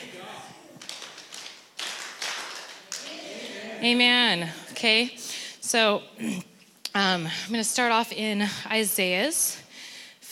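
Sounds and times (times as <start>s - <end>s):
crowd clapping knees and hands: 0.0s - 3.3s
speech: 3.8s - 9.6s.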